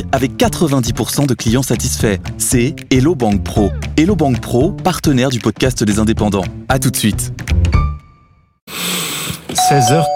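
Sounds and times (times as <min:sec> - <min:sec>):
speech: 0:00.1 - 0:07.8, 0:09.5 - 0:10.1
doorbell ringing at the door: 0:09.6 - 0:10.1.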